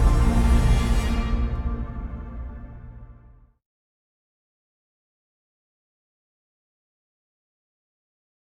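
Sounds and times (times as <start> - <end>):
aggressive ambient music: 0.0 - 3.4.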